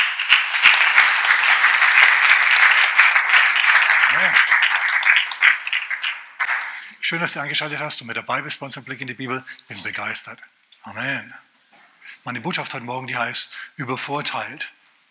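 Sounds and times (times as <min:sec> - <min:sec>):
crowd applauding: 0:00.0 - 0:07.0
speech: 0:07.1 - 0:11.4, 0:12.2 - 0:14.8.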